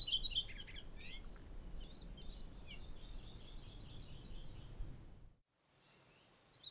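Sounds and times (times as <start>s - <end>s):
Maui parrotbill Pseudonestor xanthophrys calling: 0.0s - 4.9s.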